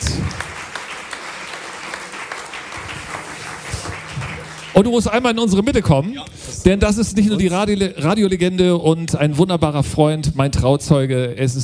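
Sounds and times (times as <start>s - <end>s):
applause: 0.0s - 6.0s
speech: 4.8s - 11.6s.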